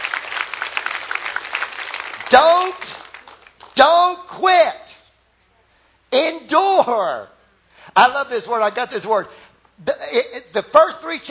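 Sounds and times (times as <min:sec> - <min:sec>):
audience clapping: 0:00.0 - 0:03.8
speech: 0:03.8 - 0:04.8, 0:08.0 - 0:11.2.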